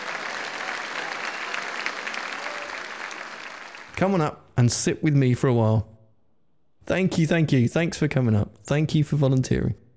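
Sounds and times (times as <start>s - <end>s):
audience applause: 0.0s - 4.0s
speech: 4.0s - 5.9s, 6.9s - 9.8s.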